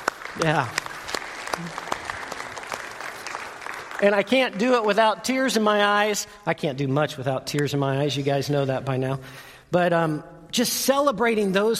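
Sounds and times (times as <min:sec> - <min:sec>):
church congregation clapping: 0:00.0 - 0:06.2
speech: 0:00.4 - 0:00.9, 0:01.6 - 0:01.8, 0:04.0 - 0:11.7.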